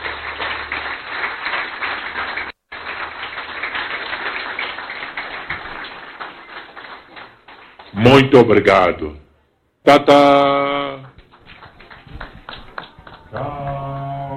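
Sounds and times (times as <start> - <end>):
audience applause: 0.0 - 8.3, 11.0 - 14.2
speech: 8.0 - 9.2, 9.8 - 10.7.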